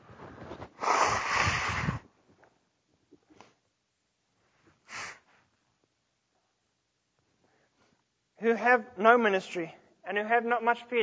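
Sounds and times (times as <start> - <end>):
person blowing nose: 0.2 - 2.1, 4.8 - 5.4
faint sniffs: 0.4 - 2.1, 4.5 - 5.6
speech: 8.4 - 11.0.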